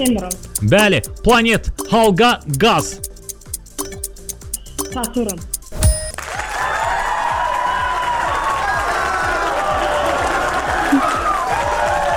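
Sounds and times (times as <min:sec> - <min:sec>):
speech: 0:00.0 - 0:03.1, 0:04.9 - 0:05.5
quiz show studio audience applauding: 0:06.2 - 0:12.1.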